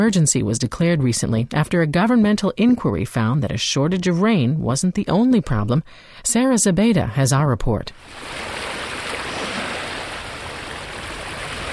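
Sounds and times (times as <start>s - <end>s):
speech: 0.0s - 8.7s
waves lapping on freshwater lake shore: 8.0s - 11.7s.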